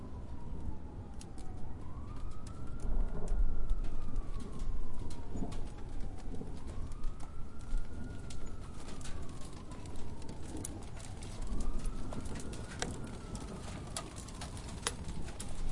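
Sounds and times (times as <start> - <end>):
rain: 0.0 - 15.6
sirens: 0.0 - 15.6
wind: 0.0 - 15.6
thunder: 2.3 - 10.7, 11.3 - 15.6.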